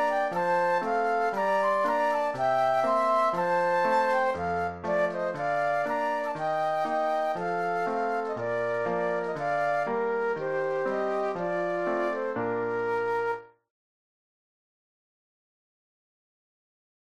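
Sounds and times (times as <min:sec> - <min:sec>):
flute duet: 0:00.0 - 0:13.6
piano: 0:00.0 - 0:13.7.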